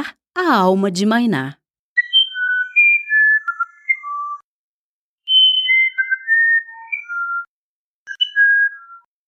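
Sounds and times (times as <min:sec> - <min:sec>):
speech: 0:00.0 - 0:01.6
uirapuru musician wren song, flute-like: 0:02.0 - 0:04.5, 0:05.3 - 0:07.5, 0:08.1 - 0:09.2.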